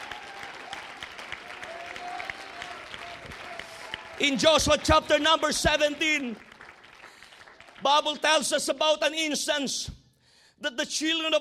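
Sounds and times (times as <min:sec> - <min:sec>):
faint crowd voices and whoops: 0:00.0 - 0:04.4
audience clapping hands: 0:00.0 - 0:08.2
speech: 0:04.2 - 0:06.5, 0:07.8 - 0:10.0, 0:10.6 - 0:11.3.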